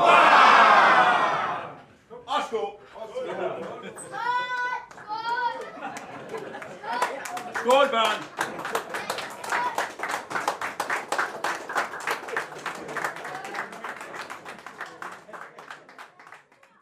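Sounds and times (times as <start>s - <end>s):
crowd cheering a long hurrah: 0.0s - 1.8s, 4.1s - 16.4s
laughter: 3.0s - 4.5s, 5.5s - 9.4s, 12.2s - 16.0s
speech: 7.6s - 8.3s.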